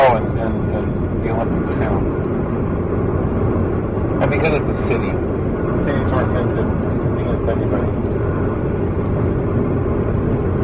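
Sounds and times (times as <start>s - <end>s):
car driving at night past the Great Salt Lake: 0.0s - 10.6s
speech: 4.2s - 8.1s.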